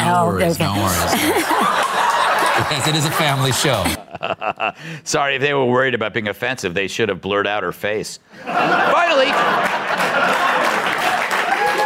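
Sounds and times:
speech: 0.1 - 1.8, 2.6 - 10.9
laughter: 0.8 - 4.9, 8.4 - 11.8
audience applause: 1.6 - 4.0, 9.1 - 11.8.

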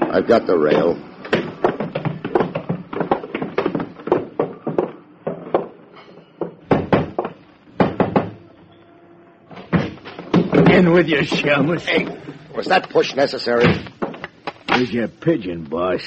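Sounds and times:
speech: 0.1 - 1.1, 10.8 - 13.9, 14.8 - 16.0
footsteps going down cellar steps: 0.8 - 7.4, 9.8 - 12.4.

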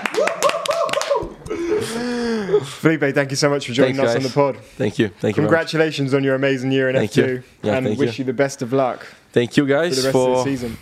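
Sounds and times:
applause: 0.0 - 1.5
speech: 2.6 - 10.8.

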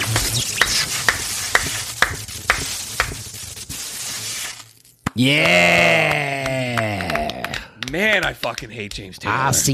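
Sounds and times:
electric zap sound effect: 0.0 - 4.8
speech: 5.2 - 6.4, 7.9 - 9.7.

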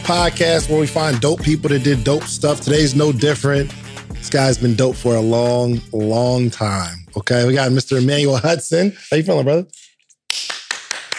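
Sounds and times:
speech: 0.1 - 9.8
handclaps: 10.3 - 11.1.

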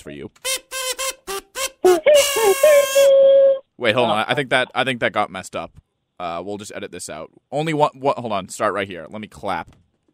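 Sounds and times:
speech: 0.0 - 0.6, 3.8 - 9.8
kazoo sound effect: 0.4 - 4.2.

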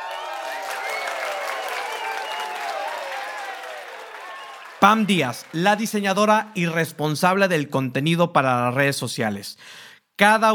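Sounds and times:
crowd cheering and whooping: 0.0 - 4.8
applause: 0.0 - 6.5
speech: 4.8 - 10.5.

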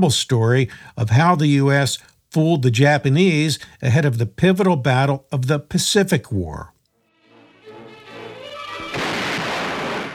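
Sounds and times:
speech: 0.0 - 6.8
naval broadside gunfire at coastal batteries: 8.9 - 10.1.

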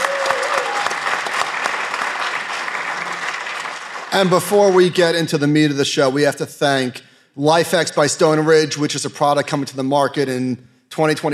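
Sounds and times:
audience applause: 0.0 - 5.0
speech: 4.1 - 11.3.

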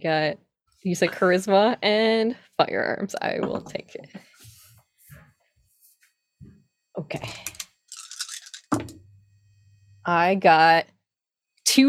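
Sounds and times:
speech: 0.0 - 4.3, 7.0 - 7.5, 10.0 - 11.0, 11.7 - 11.8
dice being rolled: 7.9 - 8.8.

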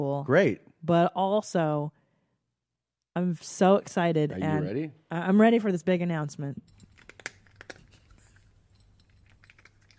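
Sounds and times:
speech: 0.0 - 2.0, 3.2 - 6.8
cat crunching dry kibble: 6.8 - 9.9.

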